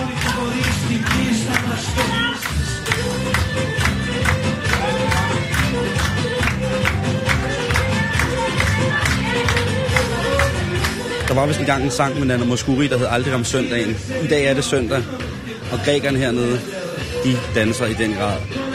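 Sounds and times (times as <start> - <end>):
clapping at a Greek christening party: 0.0 - 12.0
speech: 11.4 - 18.6.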